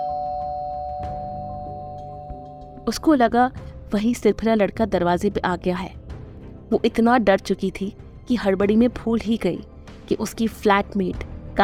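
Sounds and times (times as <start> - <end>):
doorbell ringing with a sustained electronic tone: 0.0 - 3.0
speech: 2.9 - 6.0, 6.7 - 11.6.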